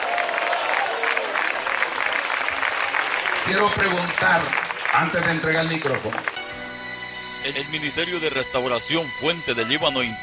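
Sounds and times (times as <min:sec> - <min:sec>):
audience applauding: 0:00.0 - 0:06.7
speech: 0:03.5 - 0:06.4, 0:07.4 - 0:10.2.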